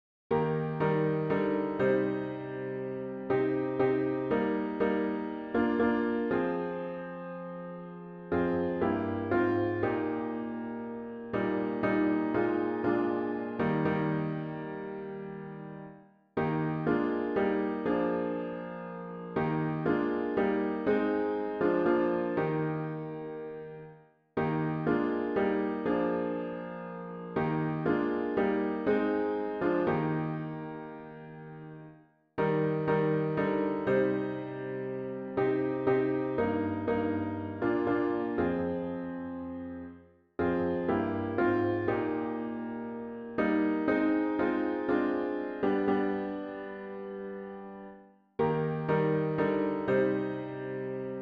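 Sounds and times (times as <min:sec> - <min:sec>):
hymn played on piano with intro: 0:00.3 - 0:51.2.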